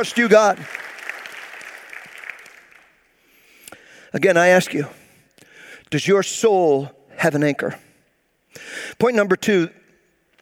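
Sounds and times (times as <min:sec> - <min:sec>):
speech: 0:00.0 - 0:00.8, 0:04.1 - 0:05.0, 0:05.9 - 0:07.9, 0:08.5 - 0:09.8
audience applause: 0:00.0 - 0:03.0.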